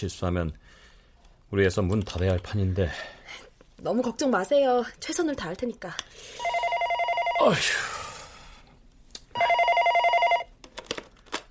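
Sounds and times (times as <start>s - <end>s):
speech: 0.0s - 0.8s, 1.5s - 6.5s, 7.4s - 7.9s
telephone bell ringing: 6.4s - 7.9s, 9.4s - 10.6s.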